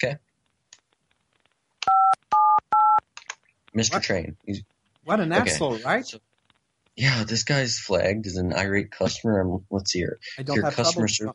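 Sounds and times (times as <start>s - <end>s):
speech: 0.0s - 0.2s, 3.7s - 6.3s, 7.0s - 11.3s
telephone beeps while putting caller on hold: 1.9s - 3.0s
laughter: 5.4s - 6.0s, 7.0s - 11.3s.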